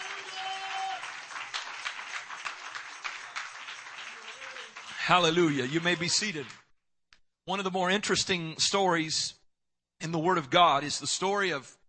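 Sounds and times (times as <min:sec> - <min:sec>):
audience clapping: 0:00.0 - 0:06.7
speech: 0:05.1 - 0:06.6, 0:07.5 - 0:09.4, 0:10.0 - 0:11.8.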